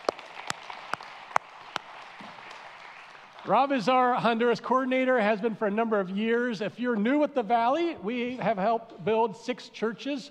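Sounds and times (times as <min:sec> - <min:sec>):
scattered applause from a gathered crowd: 0:00.0 - 0:03.8
speech: 0:03.4 - 0:10.3.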